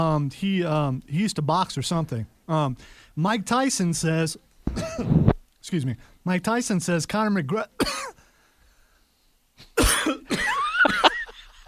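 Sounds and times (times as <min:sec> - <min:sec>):
speech: 0:00.0 - 0:08.1
man coughing hard in a studio as if choking: 0:04.7 - 0:05.3, 0:07.8 - 0:08.2, 0:09.6 - 0:11.4.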